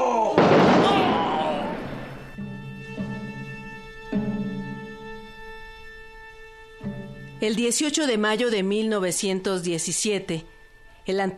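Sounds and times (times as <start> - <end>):
firing-squad volley in a radio drama about Emiliano Zapata: 0.3 - 2.4
speech: 7.4 - 11.3.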